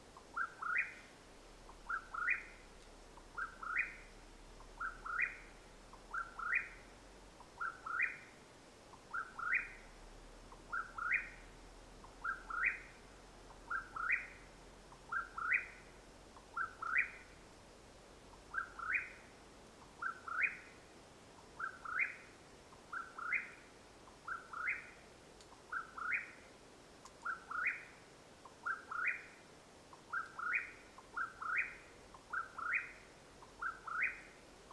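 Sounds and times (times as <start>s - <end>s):
Mexican whip-poor-will rolling whistled calls: 0.1s - 17.4s, 18.3s - 34.7s
faint clicks: 2.8s - 3.4s, 25.4s - 25.8s, 27.0s - 27.4s.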